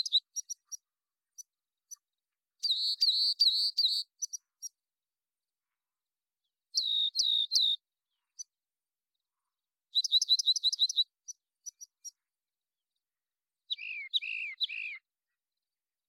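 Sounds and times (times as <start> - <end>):
rock wren singing: 0.0 - 4.8, 6.7 - 8.6, 9.9 - 12.2, 13.7 - 15.1.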